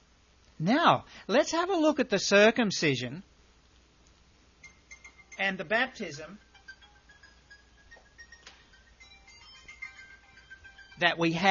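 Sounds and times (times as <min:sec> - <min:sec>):
low hiss: 0:00.0 - 0:11.4
speech: 0:00.6 - 0:03.3, 0:05.4 - 0:06.4, 0:11.0 - 0:11.4
cell phone ringtone: 0:04.6 - 0:11.4.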